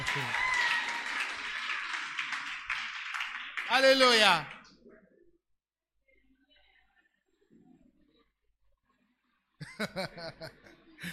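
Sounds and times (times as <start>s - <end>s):
laughter: 0.0s - 0.6s, 9.6s - 11.1s
clapping for a mother: 0.0s - 4.7s
speech: 0.2s - 0.4s, 3.7s - 4.6s, 9.8s - 11.1s.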